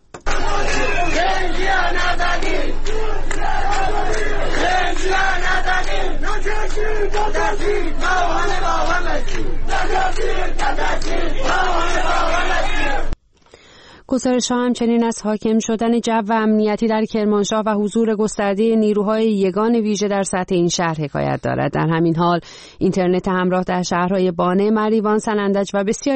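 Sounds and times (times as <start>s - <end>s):
large protest crowd chanting and shouting: 0.2s - 13.2s
speech: 5.0s - 13.1s, 14.1s - 26.1s.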